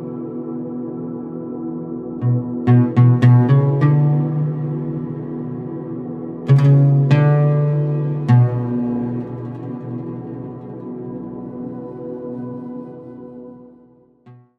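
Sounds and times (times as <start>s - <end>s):
barbat playing in background: 2.2s - 10.6s.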